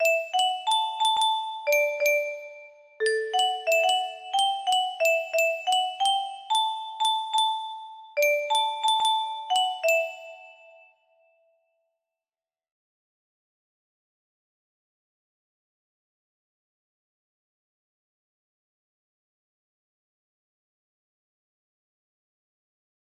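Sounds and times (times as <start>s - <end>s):
music box melody: 0.0s - 11.1s.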